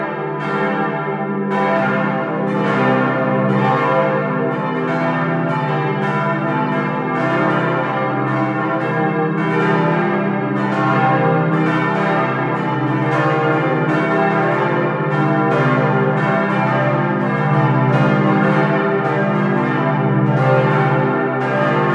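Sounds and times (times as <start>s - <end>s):
parish church south tower bells ringing in Lindenberg: 0.0s - 21.9s.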